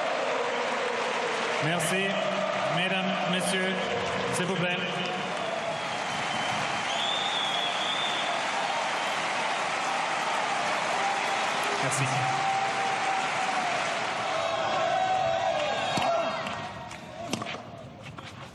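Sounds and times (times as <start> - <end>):
tennis crowd applause and cheering for Jo-Wilfried Tsonga: 0.0 - 17.6
speech: 1.6 - 5.2, 11.9 - 12.4.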